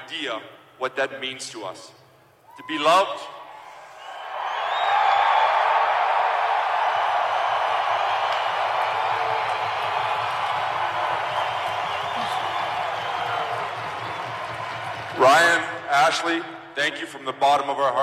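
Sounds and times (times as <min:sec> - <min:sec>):
speech: 0:00.1 - 0:02.0, 0:02.6 - 0:03.4, 0:16.1 - 0:18.0
crowd cheering: 0:02.5 - 0:15.9.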